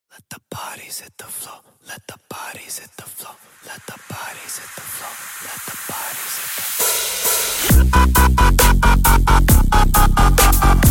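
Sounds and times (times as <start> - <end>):
drum and bass music: 3.7 - 10.8.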